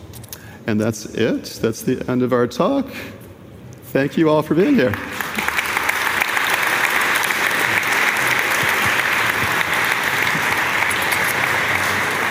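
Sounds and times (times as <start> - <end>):
speech: 0.7 - 3.2, 3.9 - 5.4
audience applause: 4.8 - 12.2.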